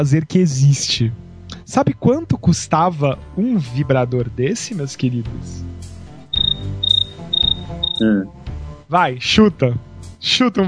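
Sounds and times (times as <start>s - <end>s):
speech: 0.0s - 5.7s, 8.0s - 10.6s
cricket chirping sound effect: 6.3s - 8.0s.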